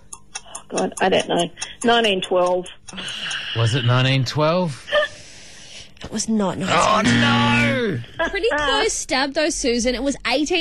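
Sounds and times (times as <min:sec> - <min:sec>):
five-second quiz countdown timer ticking: 0:00.0 - 0:03.8, 0:06.8 - 0:08.0
speech: 0:00.7 - 0:04.9, 0:06.1 - 0:10.5.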